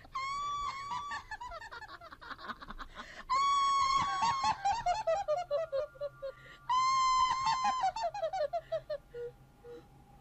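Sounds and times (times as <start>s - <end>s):
eerie laughter: 0.0s - 9.8s.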